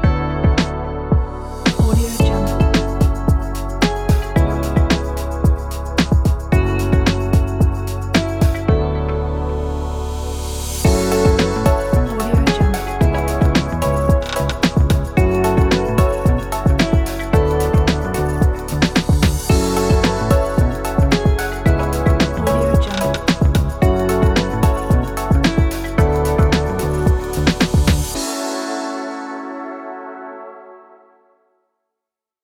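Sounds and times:
upbeat electronic pop vlog background music: 0.0s - 31.0s.

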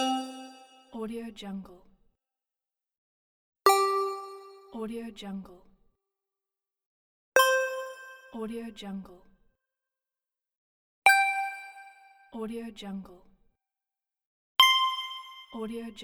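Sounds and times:
game and interface dings: 0.0s - 0.8s, 3.7s - 4.6s, 7.4s - 8.3s, 14.6s - 15.6s.

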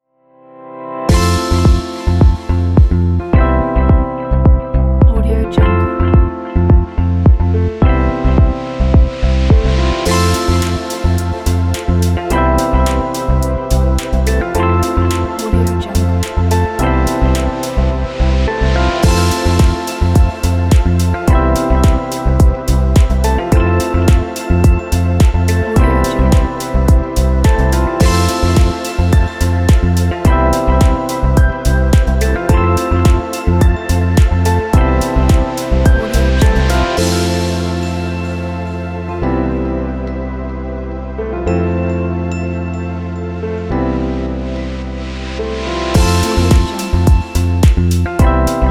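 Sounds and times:
calm fashion music: 0.0s - 48.6s.

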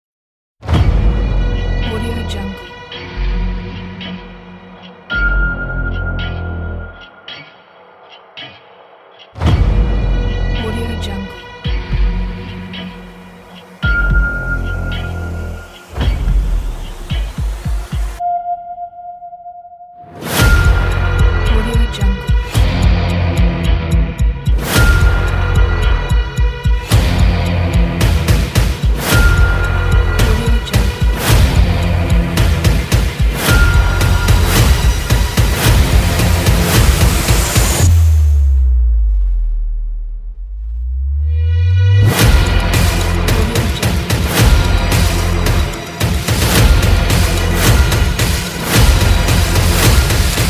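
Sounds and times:
dark trailer countdown: 0.6s - 50.4s.

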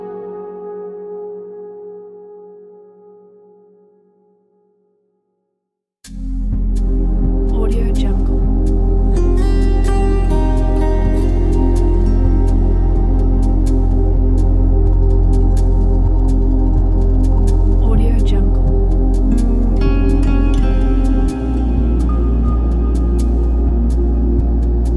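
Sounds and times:
ambient atmosphere: 6.1s - 24.9s.

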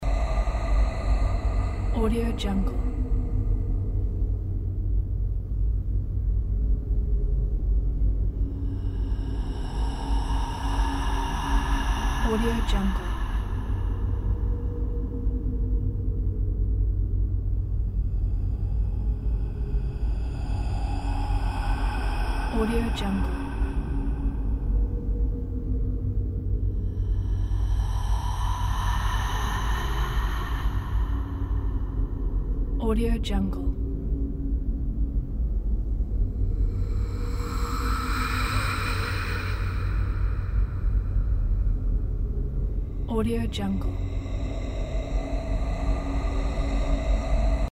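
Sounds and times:
supernatural dark ambient drone: 0.0s - 47.7s.

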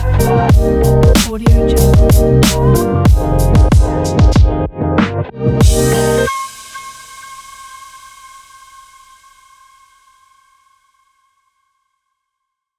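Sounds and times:
hip hop music: 0.0s - 9.8s.

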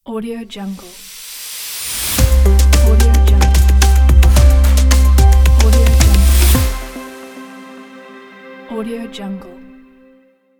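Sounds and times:
tech intro logo sting: 0.8s - 8.8s.

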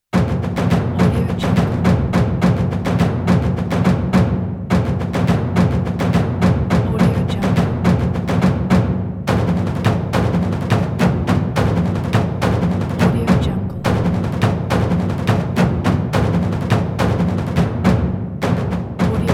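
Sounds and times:
massive taiko drum ensemble: 0.1s - 19.3s.

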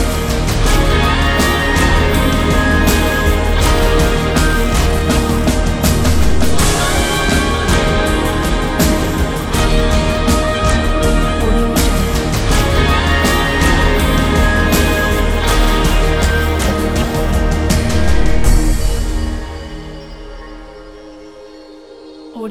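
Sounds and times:
cinematic indie rock ambience: 0.0s - 20.8s.

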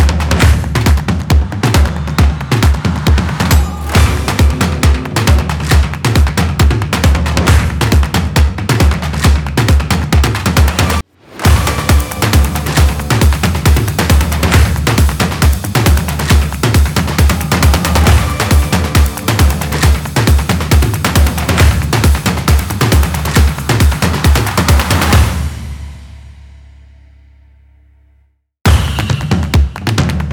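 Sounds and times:
jungle drums music kit drumming: 0.0s - 25.9s, 28.6s - 30.3s.

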